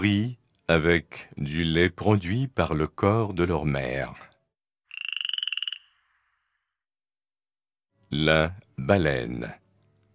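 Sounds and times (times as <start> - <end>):
speech: 0.0 - 4.3, 8.1 - 9.6
frog croaking trill: 4.9 - 6.6.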